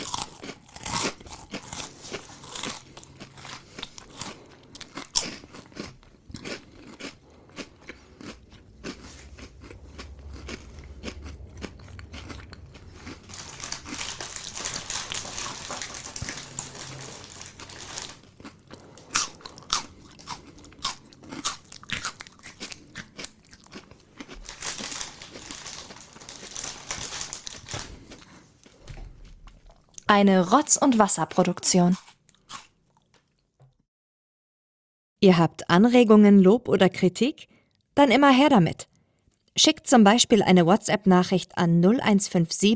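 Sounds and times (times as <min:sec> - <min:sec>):
crunchy chewing close to microphone: 0:00.0 - 0:30.1, 0:31.9 - 0:33.4
speech: 0:30.1 - 0:32.0, 0:35.2 - 0:38.9, 0:39.6 - 0:42.7.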